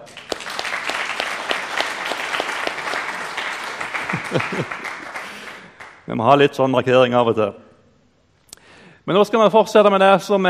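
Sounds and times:
audience applause: 0.0 - 6.1
laughter: 2.6 - 5.8
speech: 4.3 - 4.9, 6.1 - 7.6, 9.0 - 10.4.

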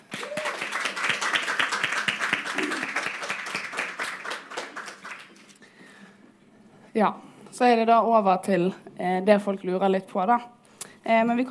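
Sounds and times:
audience applause: 0.0 - 5.6
speech: 7.0 - 11.4.

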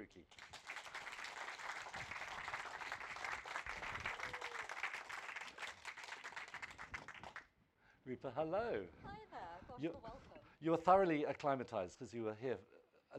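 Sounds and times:
speech: 0.1 - 0.5, 8.1 - 13.1
audience applause welcoming an author at a children's book festival in Cornwall: 0.4 - 7.4.

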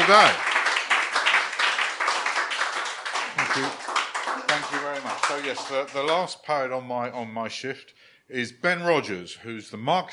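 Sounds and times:
audience applause: 0.0 - 6.2
speech: 0.1 - 0.5, 3.5 - 3.8, 4.5 - 10.1.

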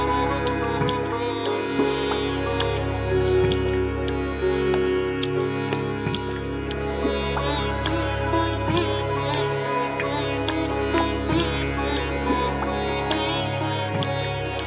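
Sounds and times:
dripping clicks of waterdrops: 0.0 - 12.2, 13.1 - 14.6
heavy low bass: 0.0 - 14.6
short plucked sitar-like notes: 0.0 - 14.6
synths holding a thick layered drone: 0.0 - 14.6.

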